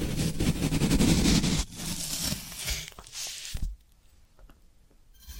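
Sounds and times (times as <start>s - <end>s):
floral foam being worked: 0.2s - 3.6s.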